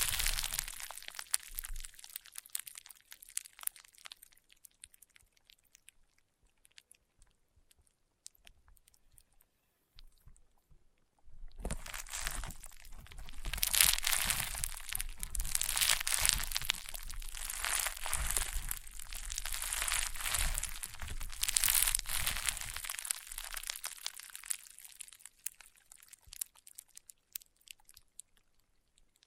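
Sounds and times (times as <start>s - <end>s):
crunchy popping slime squeezed and pressed: 0.0s - 4.6s, 11.6s - 28.2s.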